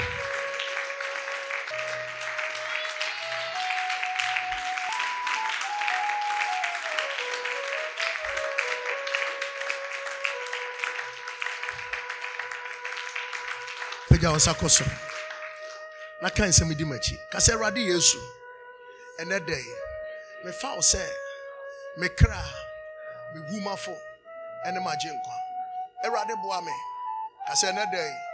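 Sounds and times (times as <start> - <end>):
audience clapping: 0.0 - 17.7
sustained organ-like tone: 0.0 - 28.3
speech: 14.2 - 15.2, 16.2 - 18.4, 19.2 - 19.8, 20.4 - 21.2, 22.0 - 22.6, 23.5 - 25.4, 26.0 - 26.9, 27.5 - 28.3.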